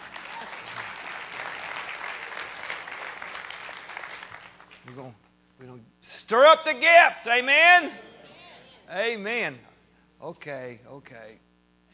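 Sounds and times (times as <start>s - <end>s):
audience clapping hands: 0.0s - 5.2s
speech: 4.9s - 8.1s, 8.9s - 11.5s.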